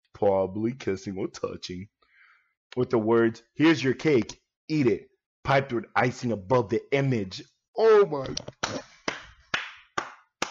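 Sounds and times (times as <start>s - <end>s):
speech: 0.2s - 2.0s, 2.7s - 8.9s
hand claps: 8.3s - 10.4s.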